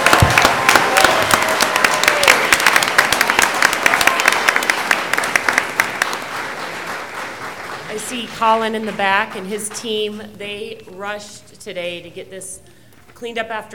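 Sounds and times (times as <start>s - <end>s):
audience applause: 0.0s - 9.9s
speech: 8.1s - 13.7s.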